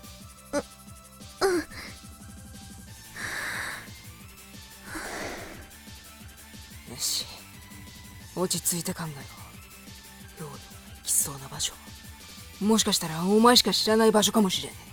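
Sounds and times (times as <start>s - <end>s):
quiet music: 0.0s - 14.9s
deep breath: 3.2s - 4.0s, 4.8s - 5.7s
speech: 8.4s - 9.4s, 11.6s - 12.0s, 12.6s - 14.9s.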